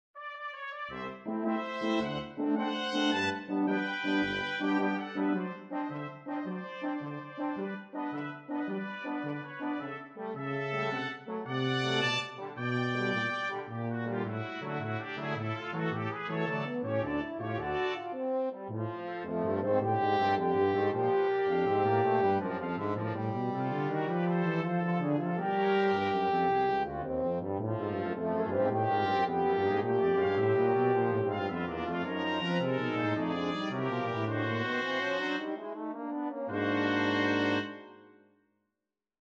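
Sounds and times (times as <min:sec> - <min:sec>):
military brass theme: 0:00.2 - 0:38.4.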